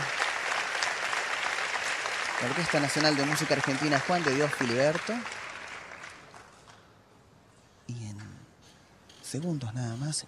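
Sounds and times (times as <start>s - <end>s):
audience ovation applause at orchestra concert: 0.0s - 6.5s
speech: 2.4s - 5.4s, 9.3s - 10.2s.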